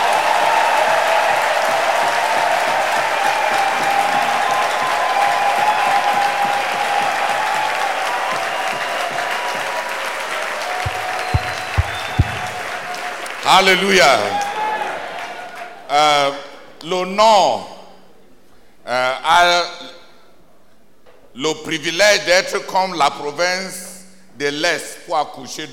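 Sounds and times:
audience applause: 0:00.0 - 0:15.9
speech: 0:13.5 - 0:14.4, 0:15.9 - 0:17.7, 0:18.9 - 0:19.7, 0:21.4 - 0:23.8, 0:24.4 - 0:25.7.

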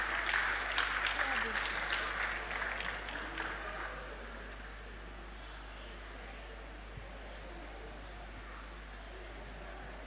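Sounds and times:
audience applause: 0:00.0 - 0:04.8.

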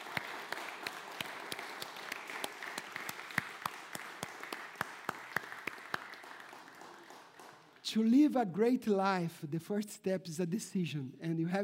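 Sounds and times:
audience applause: 0:00.0 - 0:07.8
speech: 0:07.9 - 0:11.6.

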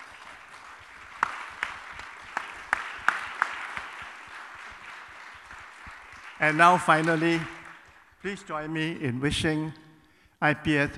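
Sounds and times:
audience applause: 0:00.0 - 0:08.0
speech: 0:06.4 - 0:07.6, 0:08.2 - 0:09.8, 0:10.4 - 0:10.9.

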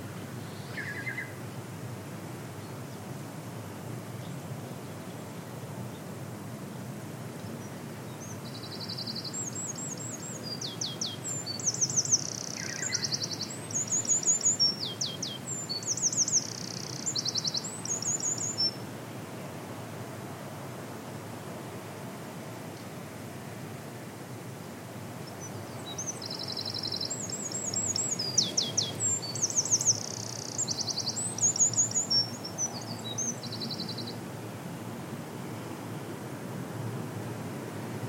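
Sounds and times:
background noise: 0:00.0 - 0:38.0
Eurasian wren singing: 0:00.5 - 0:01.3, 0:08.1 - 0:18.8, 0:25.3 - 0:34.2.

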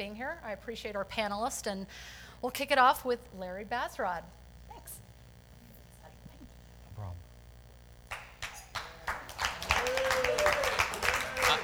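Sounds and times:
speech: 0:00.0 - 0:04.4
audience applause: 0:08.1 - 0:11.6.

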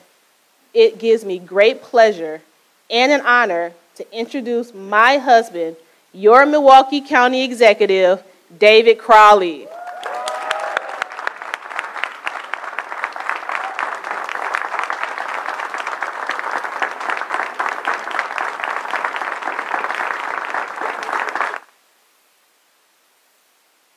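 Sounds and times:
speech: 0:00.8 - 0:09.8
cheer or whistle: 0:09.7 - 0:11.1
audience applause: 0:09.7 - 0:21.7.

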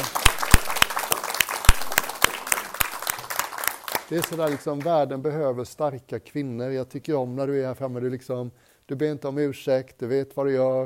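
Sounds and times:
audience applause: 0:00.0 - 0:04.9
speech: 0:04.1 - 0:10.8.

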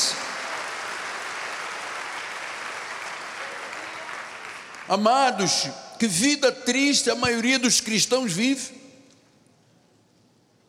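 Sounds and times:
audience applause: 0:00.0 - 0:05.0
speech: 0:04.9 - 0:08.8.

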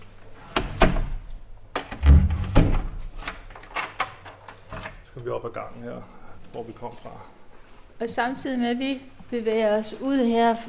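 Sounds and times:
heavy prison door lock clicking and clunking: 0:01.7 - 0:05.0
deep solid thuds of heavy prison door: 0:02.0 - 0:03.0
speech: 0:05.2 - 0:07.4, 0:08.0 - 0:10.6.

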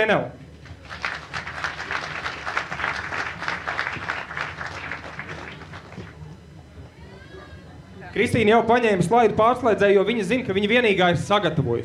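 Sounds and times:
speech: 0:00.0 - 0:01.0, 0:08.2 - 0:11.8
audience applause: 0:00.8 - 0:06.2.

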